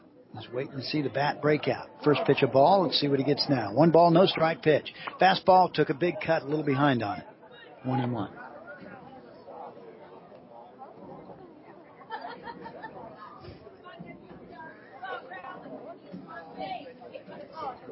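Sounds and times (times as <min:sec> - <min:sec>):
baseball stadium crowd chatter: 0:00.0 - 0:17.9
speech: 0:00.4 - 0:08.4
laughter: 0:11.9 - 0:13.5.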